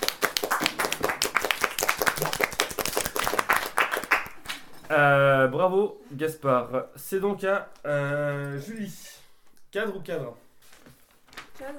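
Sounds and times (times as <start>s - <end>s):
audience clapping: 0.0s - 4.8s
speech: 4.9s - 10.4s, 11.6s - 11.7s.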